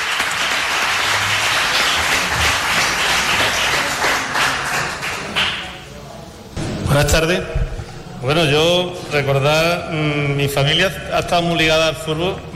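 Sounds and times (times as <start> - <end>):
applause: 0.0 - 5.9
speech: 7.0 - 7.6, 8.2 - 12.5.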